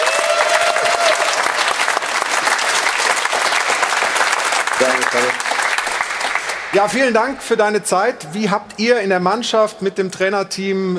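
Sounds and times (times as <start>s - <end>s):
audience applause in Munich: 0.0s - 7.0s
speech: 4.8s - 5.4s, 6.7s - 10.9s.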